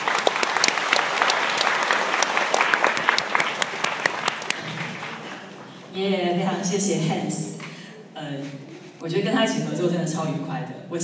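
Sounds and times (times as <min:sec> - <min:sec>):
audience applause welcoming a speaker: 0:00.0 - 0:05.8
speech: 0:06.0 - 0:07.5, 0:08.2 - 0:11.0.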